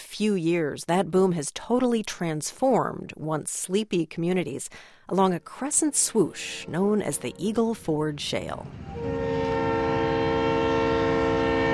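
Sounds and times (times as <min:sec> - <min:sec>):
speech: 0:00.2 - 0:09.5
freight rail cars rumbling and clattering: 0:06.3 - 0:11.7
freight train horn blaring: 0:06.4 - 0:07.9, 0:08.7 - 0:11.7.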